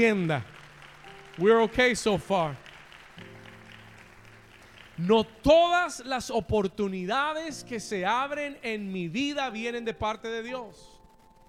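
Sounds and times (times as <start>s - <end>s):
speech: 0.0s - 0.5s, 1.4s - 2.6s, 5.0s - 10.9s
audience applause: 0.0s - 6.1s.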